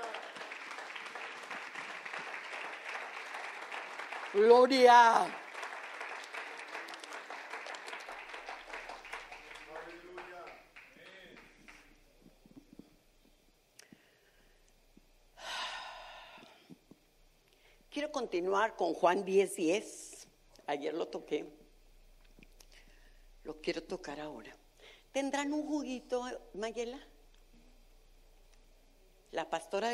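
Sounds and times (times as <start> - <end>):
audience applauding: 0.0 - 12.1
speech: 4.4 - 5.4, 18.2 - 20.0, 20.7 - 21.6, 23.4 - 24.6, 25.2 - 27.1, 29.3 - 29.9.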